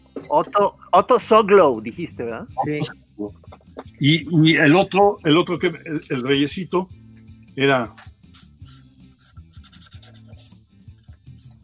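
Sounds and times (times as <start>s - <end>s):
speech: 0.3s - 7.0s, 7.6s - 8.1s
marker pen drawing a cartoon figure on paper: 7.9s - 11.6s.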